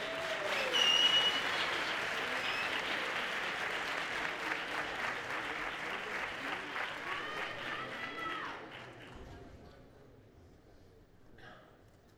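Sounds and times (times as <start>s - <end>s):
theatre audience applause: 0.0s - 9.4s.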